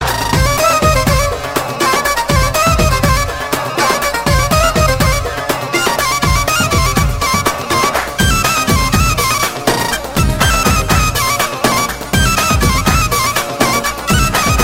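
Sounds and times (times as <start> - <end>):
dabke ringtone music: 0.0 - 14.6.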